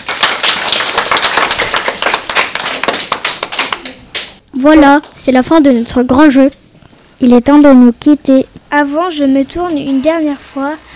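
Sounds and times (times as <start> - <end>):
group of children clapping and applauding: 0.0 - 4.4
speech: 4.6 - 6.6, 7.2 - 10.8.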